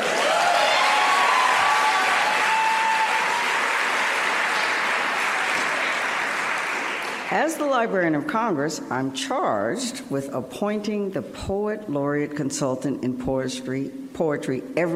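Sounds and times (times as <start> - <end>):
audience clapping: 0.0 - 7.4
faint whoops: 0.1 - 3.7
speech: 7.3 - 14.9.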